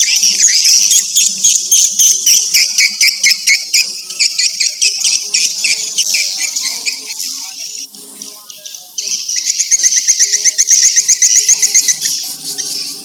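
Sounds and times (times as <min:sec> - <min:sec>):
swiftlets chirping: 0:00.0 - 0:13.0.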